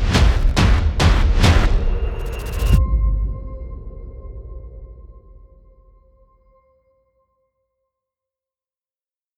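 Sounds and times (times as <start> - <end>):
dramatic cinematic trailer music: 0.0 - 6.7.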